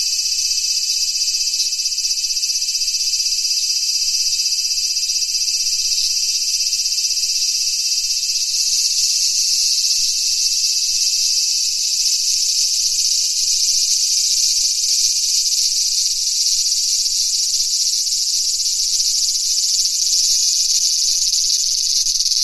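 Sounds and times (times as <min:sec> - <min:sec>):
cicada chorus drone: 0:00.0 - 0:22.4.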